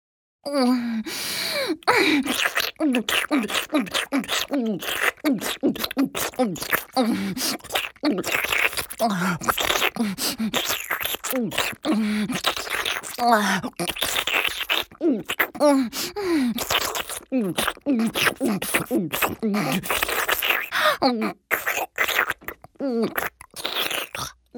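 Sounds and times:
intense sucking sounds: 0:00.6 - 0:24.4.

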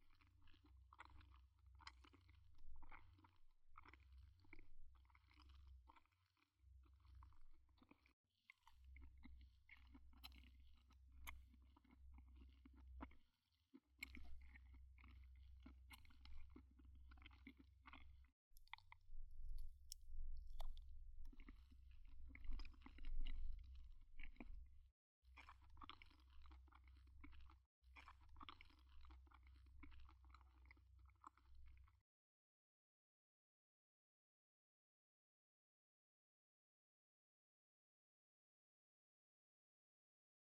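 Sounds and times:
eating dango dumplings: 0:00.1 - 0:19.0, 0:19.6 - 0:24.6, 0:25.4 - 0:31.4.

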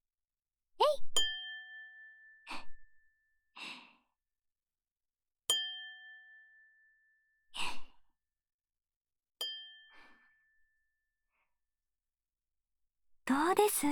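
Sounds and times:
tokkuri ceramic sake bottle struck and ringing: 0:01.2 - 0:02.4, 0:05.5 - 0:06.3, 0:09.4 - 0:09.9
soft breathy sounds: 0:07.6 - 0:08.0
speech: 0:13.4 - 0:13.8.

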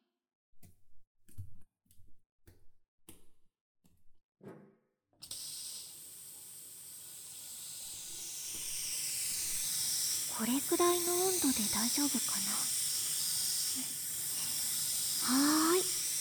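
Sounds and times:
shower water spraying: 0:05.2 - 0:16.1
speech: 0:10.4 - 0:12.8.

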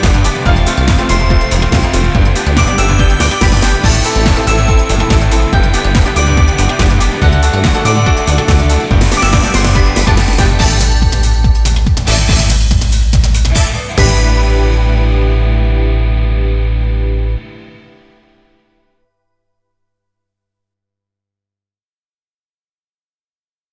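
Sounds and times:
off vocal instrumental music: 0:00.0 - 0:18.8.

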